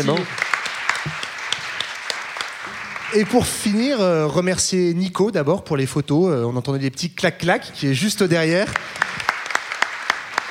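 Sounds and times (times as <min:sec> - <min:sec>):
speech: 0:00.0 - 0:01.2, 0:03.1 - 0:09.1
small audience applause: 0:00.0 - 0:04.2, 0:08.6 - 0:10.4.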